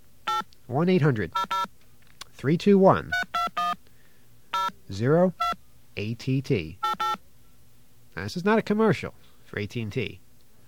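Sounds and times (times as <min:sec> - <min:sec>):
touch-tone keypad dialing of an 800 number: 0:00.3 - 0:00.5, 0:01.4 - 0:01.7, 0:03.1 - 0:03.8, 0:05.4 - 0:05.6, 0:06.8 - 0:07.2
speech: 0:00.7 - 0:01.6, 0:02.4 - 0:03.3, 0:04.9 - 0:06.8, 0:08.2 - 0:10.6.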